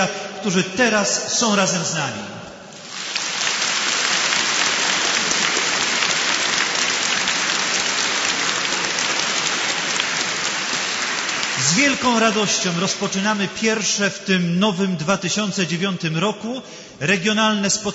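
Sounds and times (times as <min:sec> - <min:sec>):
speech: 0:00.0 - 0:02.4, 0:11.7 - 0:17.9
crowd applauding: 0:02.7 - 0:13.4.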